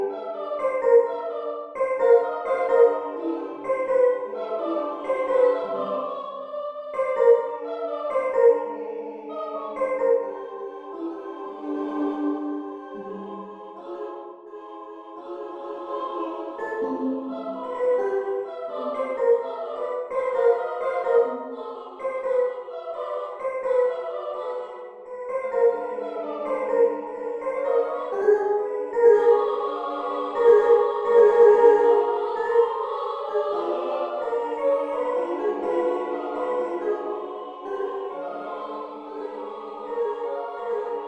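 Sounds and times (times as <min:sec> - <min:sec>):
female choir singing in Hebrew: 0:00.0 - 0:41.0.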